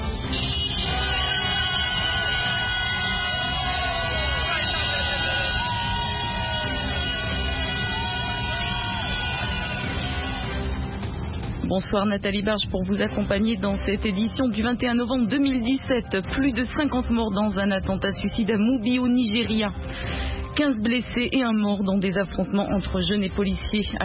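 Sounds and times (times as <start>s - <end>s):
car horns honking in the streets of Harare: 0.0s - 7.8s
cries of joy in the Zimbabwean Parliament: 0.0s - 11.5s
applause in the Zimbabwean Parliament: 0.8s - 11.2s
speech: 11.7s - 24.0s.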